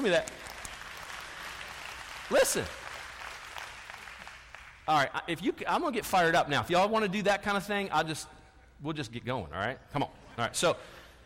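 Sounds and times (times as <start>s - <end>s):
speech: 0.0s - 0.4s, 2.3s - 2.8s, 4.9s - 11.0s
audience applause: 0.0s - 4.8s.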